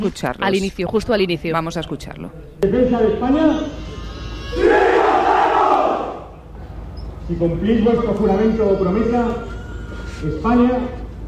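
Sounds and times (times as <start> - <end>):
speech: 0.0 - 4.8, 7.3 - 9.6, 10.2 - 11.0
crowd shouting in unison at oath ceremony: 4.5 - 6.3.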